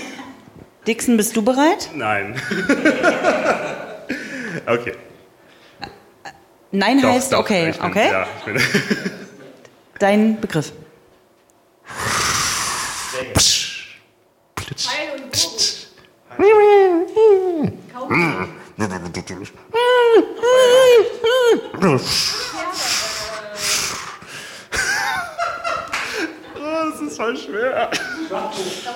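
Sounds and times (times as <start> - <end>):
speech: 0.8 - 5.1, 6.7 - 9.2, 10.0 - 10.8, 13.4 - 13.6, 19.2 - 20.3, 21.8 - 22.3
laughter: 2.4 - 4.7, 8.1 - 9.6, 19.8 - 23.8, 24.7 - 28.9
person imitating a dolphin: 11.9 - 14.0, 14.6 - 24.2.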